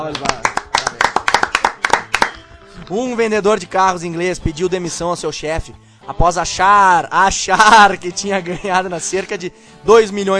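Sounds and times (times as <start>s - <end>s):
speech: 0.0s - 0.5s, 2.9s - 10.3s
brisk hand clapping for a round of applause: 0.0s - 2.6s.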